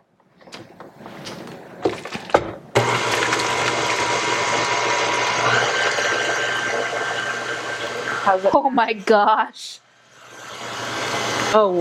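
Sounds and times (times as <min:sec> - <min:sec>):
electric mixer running on low speed: 0:02.8 - 0:11.7
speech: 0:08.2 - 0:09.8, 0:11.5 - 0:11.7.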